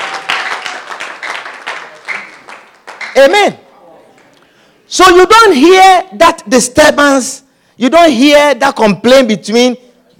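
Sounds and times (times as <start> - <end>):
audience clapping hands: 0.0 - 4.4
speech: 3.2 - 3.6, 4.9 - 9.8.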